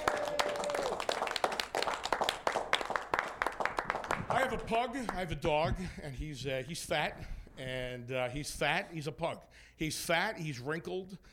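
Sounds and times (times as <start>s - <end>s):
audience applause: 0.0s - 4.7s
speech: 4.5s - 11.3s.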